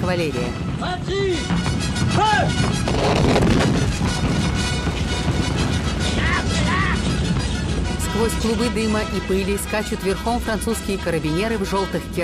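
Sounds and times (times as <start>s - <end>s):
speech: 0.1s - 4.8s, 8.2s - 12.2s
French fortified field artillery battery firing a barrage in a battle film: 1.6s - 8.1s.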